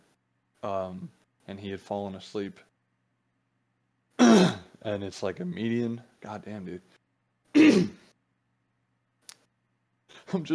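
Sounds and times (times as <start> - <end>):
speech: 0.6 - 2.7, 4.3 - 7.0, 7.6 - 8.1, 10.3 - 10.5
throat clearing: 4.2 - 4.7, 7.6 - 8.1
faint click: 9.2 - 9.5.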